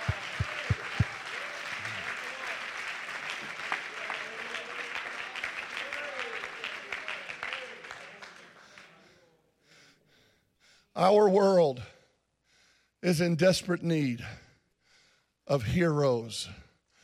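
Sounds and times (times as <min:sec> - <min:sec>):
audience clapping hands: 0:00.0 - 0:09.0
speech: 0:11.0 - 0:11.9, 0:13.0 - 0:14.4, 0:15.5 - 0:16.6.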